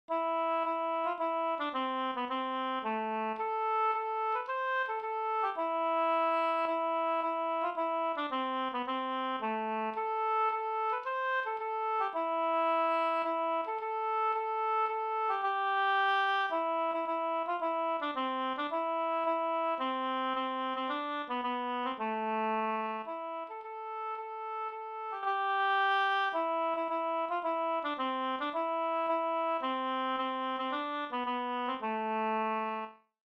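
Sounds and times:
polska folk dance tune in A minor: 0.1s - 32.8s.

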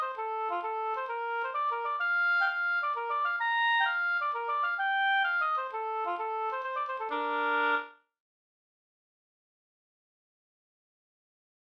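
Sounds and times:
hambo polska folk dance tune: 0.0s - 7.9s.

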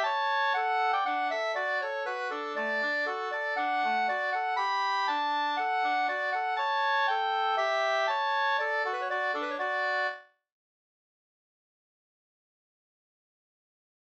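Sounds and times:
polka music: 0.0s - 10.2s.

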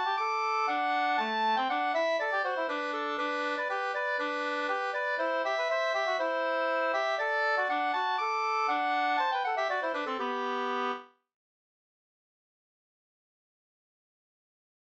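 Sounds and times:
polka galop music: 0.0s - 11.1s.

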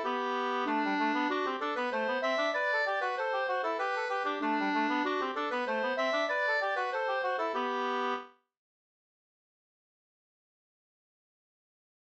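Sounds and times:
two-part slangpolska: 0.0s - 8.2s.

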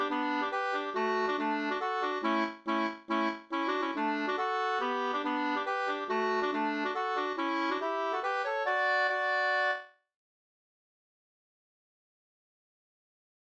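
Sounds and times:
Swedish polska hambopolkett folk dance tune: 0.0s - 9.8s.

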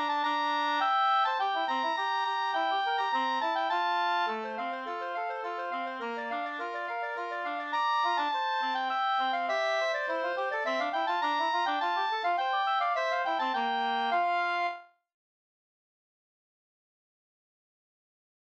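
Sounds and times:
slängpolska ringpolska folk dance music: 0.0s - 14.8s.

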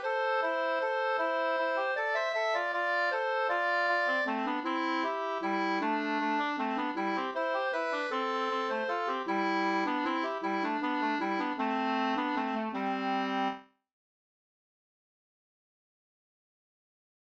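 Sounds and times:
waltz in two parts: 0.0s - 13.6s.

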